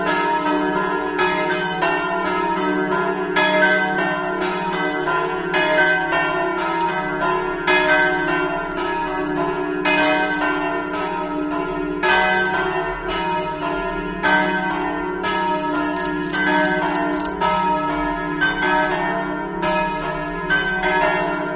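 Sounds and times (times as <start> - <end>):
bells: 0.0 - 21.5.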